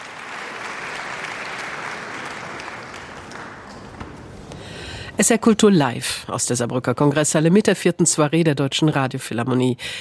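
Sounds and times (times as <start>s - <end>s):
concert hall audience applause: 0.0s - 4.8s
speech: 5.2s - 10.0s.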